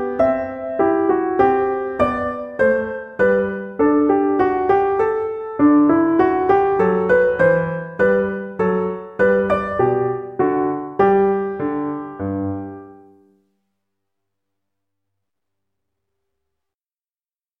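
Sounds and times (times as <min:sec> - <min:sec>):
minuet on piano: 0:00.0 - 0:13.5.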